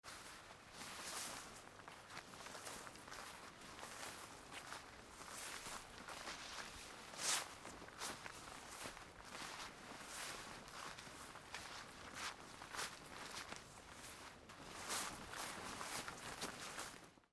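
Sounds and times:
footsteps on grass in a forest: 0.1 - 17.1.

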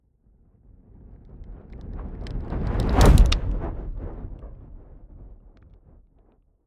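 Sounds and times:
fire whooshing and crackling: 1.8 - 6.0.

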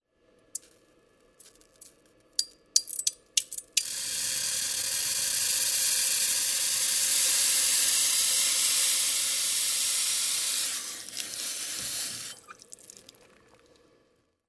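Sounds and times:
cooling: 1.4 - 13.7.

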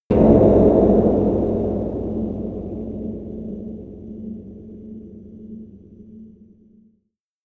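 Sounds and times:
airy cave hits: 0.0 - 6.5.

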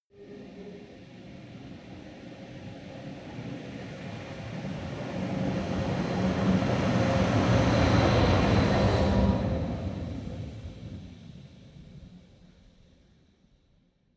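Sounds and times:
train locomotive passing by: 0.2 - 11.2.

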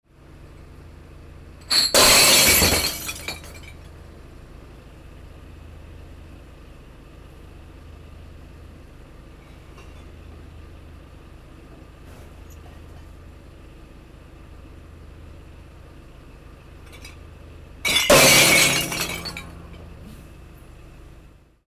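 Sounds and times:
glass breaking during waste collection: 1.7 - 3.7, 17.9 - 19.8.

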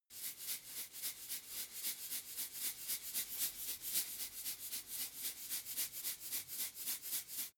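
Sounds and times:
salt shaker shaking: 0.1 - 7.5.

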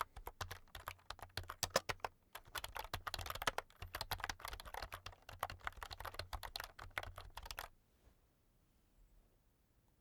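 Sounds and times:
fast soft typing sequence on an external computer keyboard: 0.0 - 7.7.

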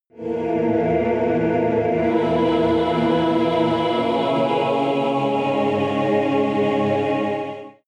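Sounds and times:
choir singing evil chord sequence: 0.1 - 7.8.

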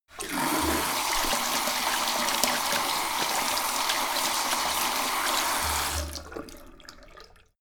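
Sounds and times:
sink tap running fast: 0.1 - 6.2.

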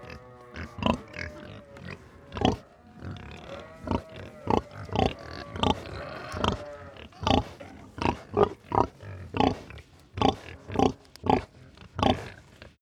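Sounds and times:
pigs grunting: 0.0 - 12.8
quiet barn hum: 0.0 - 12.8.

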